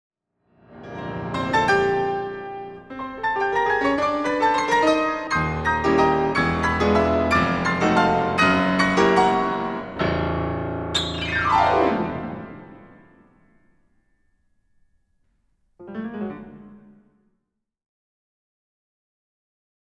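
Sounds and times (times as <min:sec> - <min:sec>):
music: 0:00.6 - 0:13.8, 0:15.8 - 0:17.3.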